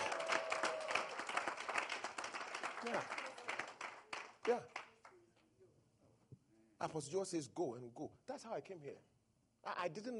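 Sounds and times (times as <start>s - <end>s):
congregation clapping at a church service: 0.0s - 5.2s
speech: 2.8s - 3.2s, 4.4s - 4.8s, 6.8s - 10.1s.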